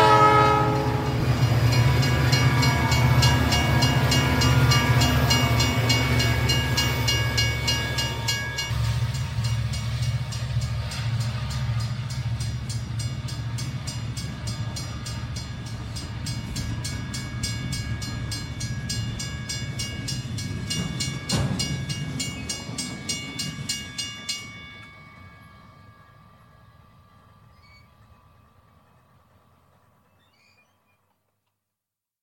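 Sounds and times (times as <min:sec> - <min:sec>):
probably Southern Pacific locomotive approaching a level crossing: 0:00.0 - 0:31.3.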